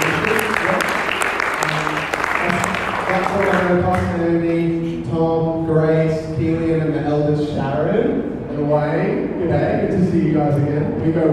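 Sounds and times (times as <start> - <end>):
round of applause: 0.0 - 4.2
speech: 3.4 - 11.3.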